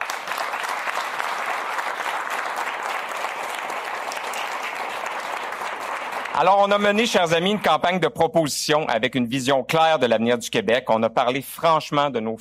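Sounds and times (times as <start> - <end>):
audience applause: 0.0 - 7.8
speech: 6.4 - 12.3.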